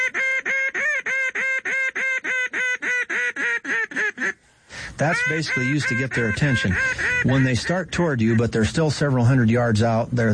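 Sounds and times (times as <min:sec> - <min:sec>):
duck call blown as loud highball: 0:00.0 - 0:04.4, 0:05.0 - 0:08.6
speech: 0:05.0 - 0:10.3.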